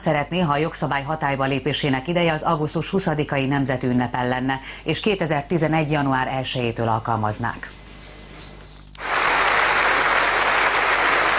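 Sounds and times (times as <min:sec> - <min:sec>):
speech: 0:00.0 - 0:07.8
applause in parliament: 0:09.0 - 0:11.3.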